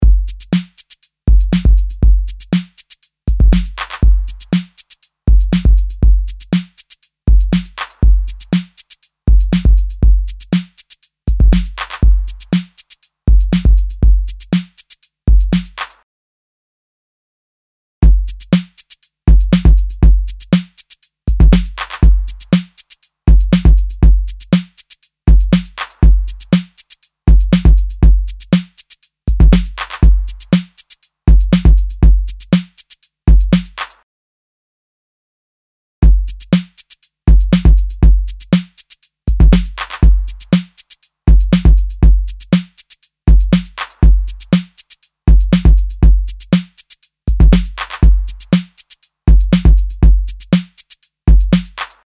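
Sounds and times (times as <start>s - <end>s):
drum loop through a limiter: 0.0s - 16.0s, 18.0s - 34.0s, 36.0s - 52.0s.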